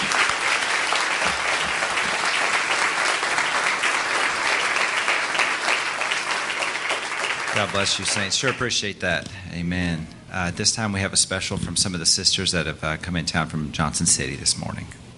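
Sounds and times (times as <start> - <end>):
audience clapping hands: 0.0 - 8.7
speech: 7.6 - 15.1.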